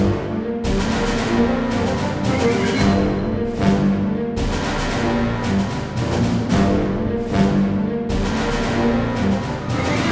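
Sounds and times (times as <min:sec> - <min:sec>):
intense action music loop: 0:00.0 - 0:10.1.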